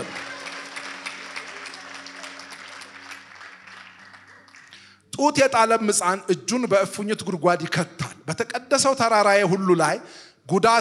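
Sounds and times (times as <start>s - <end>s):
church congregation clapping for God: 0.0s - 5.1s
speech: 5.2s - 10.7s.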